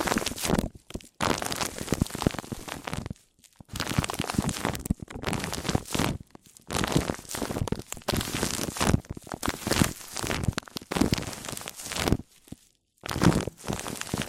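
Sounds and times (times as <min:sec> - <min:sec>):
microphone rubbing on microphone: 0:00.0 - 0:14.2.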